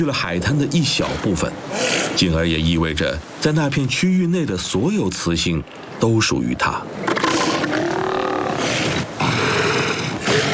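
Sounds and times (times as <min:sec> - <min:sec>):
speech: 0:00.0 - 0:07.3
male elephant seal roaring: 0:07.0 - 0:10.5.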